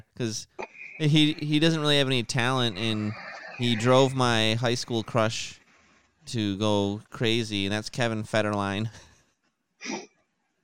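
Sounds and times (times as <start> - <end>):
speech: 0.2 - 5.6, 6.3 - 9.1, 9.8 - 10.1
person sneezing: 9.8 - 10.1.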